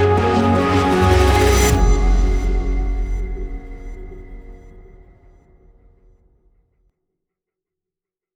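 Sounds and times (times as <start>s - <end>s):
lobby music: 0.0s - 5.5s.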